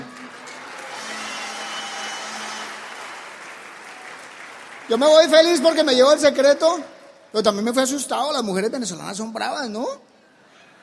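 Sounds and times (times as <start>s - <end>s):
audience applause: 0.0s - 6.4s
speech: 4.9s - 10.1s.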